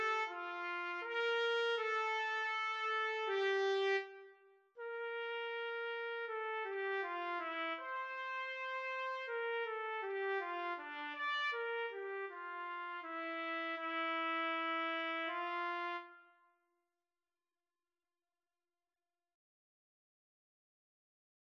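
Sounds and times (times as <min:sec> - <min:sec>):
trumpet in a trumpet-cello duet: 0:00.0 - 0:16.5.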